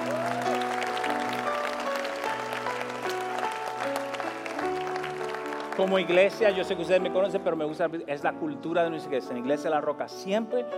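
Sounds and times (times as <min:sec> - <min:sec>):
audience applauding: 0:00.0 - 0:07.1
sustained keyboard chords: 0:00.0 - 0:10.7
speech: 0:05.8 - 0:10.7.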